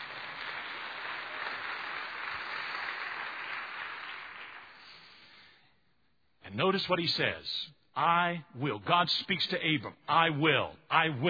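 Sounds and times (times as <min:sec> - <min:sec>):
church audience applauding: 0:00.0 - 0:05.2
speech: 0:06.5 - 0:11.2.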